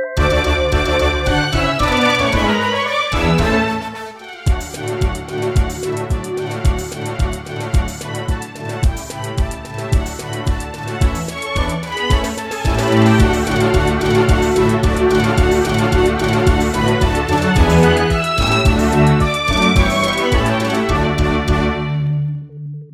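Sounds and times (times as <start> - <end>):
TR-606 drum machine mix: 0.2 - 22.2.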